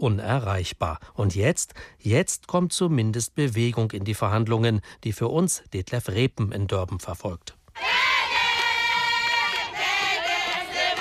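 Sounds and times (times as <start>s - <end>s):
speech: 0.0s - 8.1s
African demonstrators singing in chorus at a climate march in Durban: 7.8s - 10.9s.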